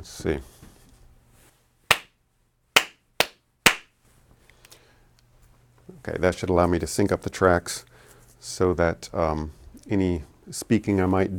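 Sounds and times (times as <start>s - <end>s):
speech: 0.0s - 0.6s, 5.9s - 11.3s
hand claps to sync recordings: 1.9s - 2.1s, 2.8s - 3.9s.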